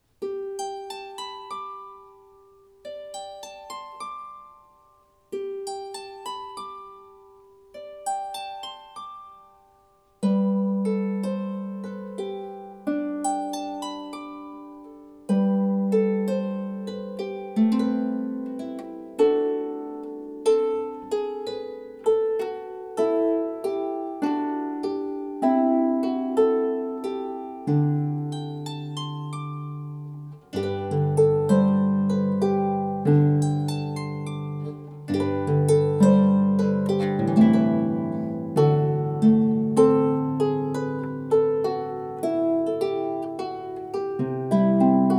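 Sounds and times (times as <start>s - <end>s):
harp: 0.0s - 45.1s.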